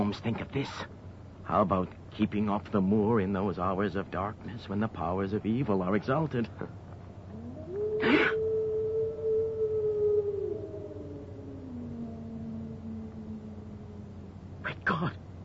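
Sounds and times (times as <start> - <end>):
speech: 0.1 - 6.8
cry of the hound of the Baskervilles: 7.3 - 14.6.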